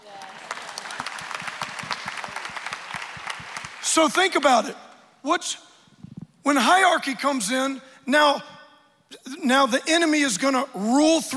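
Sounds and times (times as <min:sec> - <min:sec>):
audience clapping: 0:00.0 - 0:04.7
speech: 0:03.9 - 0:05.7, 0:06.4 - 0:08.5, 0:09.2 - 0:11.3.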